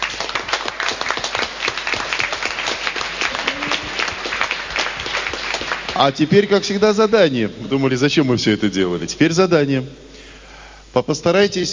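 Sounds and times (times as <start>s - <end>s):
group in a training session applauding each other: 0.0s - 6.9s
speech: 6.0s - 10.1s, 10.9s - 11.7s.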